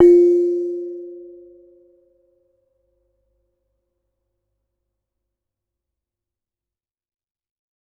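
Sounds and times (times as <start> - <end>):
kenong gong of a gamelan: 0.0 - 1.6.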